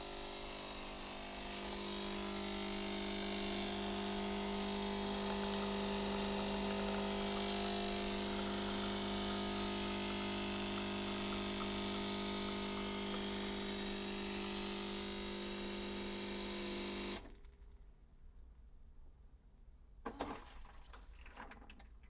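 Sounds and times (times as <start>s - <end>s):
coffee machine motor whirring: 0.0s - 17.6s.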